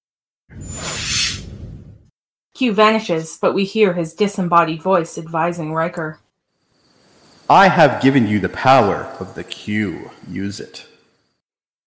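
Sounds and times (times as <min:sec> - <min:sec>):
soldier's weapon firing at Worf with hissing whoosh and whine: 0:00.5 - 0:02.0
speech: 0:02.6 - 0:06.2, 0:07.5 - 0:10.9.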